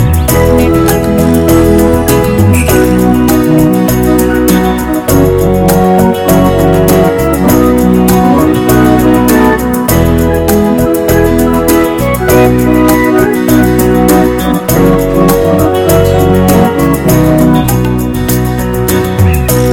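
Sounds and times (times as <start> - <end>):
pretty eight-beat song: 0.0 - 19.7.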